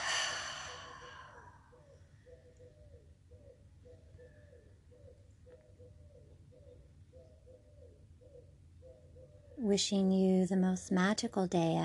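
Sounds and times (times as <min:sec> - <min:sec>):
breath exhaled through an open mouth: 0:00.0 - 0:01.5
speech: 0:09.6 - 0:11.8.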